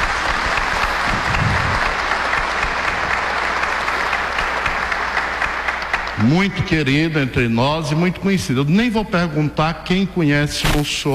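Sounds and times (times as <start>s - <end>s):
audience applause: 0.0s - 7.2s
speech: 6.2s - 11.1s.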